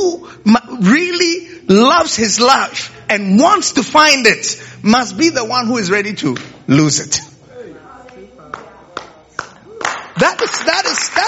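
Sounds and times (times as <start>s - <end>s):
speech: 0.4s - 7.3s, 10.2s - 11.2s
audience clapping: 8.5s - 11.2s.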